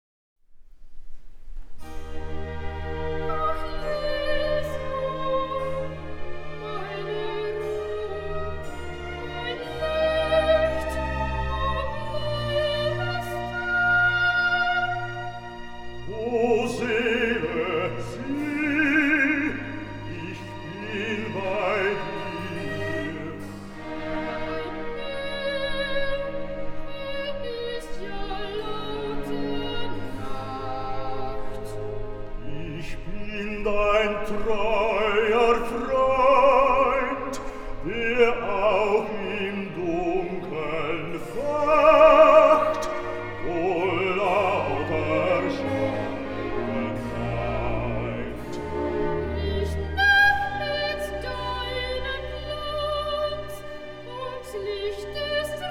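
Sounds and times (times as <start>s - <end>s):
recitative singing: 2.2s - 55.6s.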